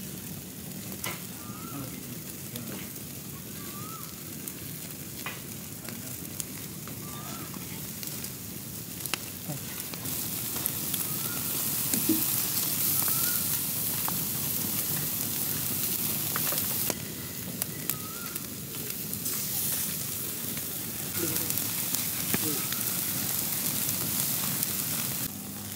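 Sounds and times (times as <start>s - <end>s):
lamb ribs grilling over a fire: 0.0s - 25.7s
voices murmuring: 0.6s - 25.3s.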